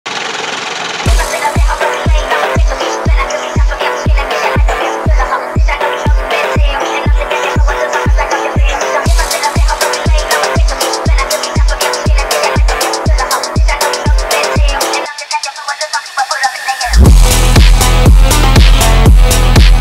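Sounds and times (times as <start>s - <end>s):
phonk music: 1.0s - 19.8s.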